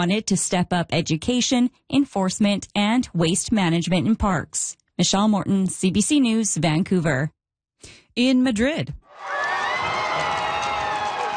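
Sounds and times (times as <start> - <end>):
speech: 0.0 - 9.3
huge crowds cheering and shouting welcoming Pope Leo at Madrid's royal palace: 9.1 - 11.3.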